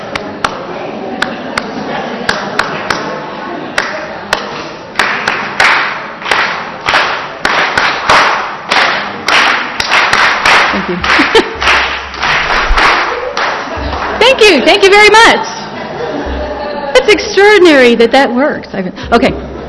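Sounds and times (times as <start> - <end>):
hand clapping: 0.1 - 0.6, 2.3 - 3.1, 3.8 - 14.3
laughter: 10.6 - 12.2, 12.8 - 17.5
speech: 14.6 - 15.5, 17.1 - 19.4.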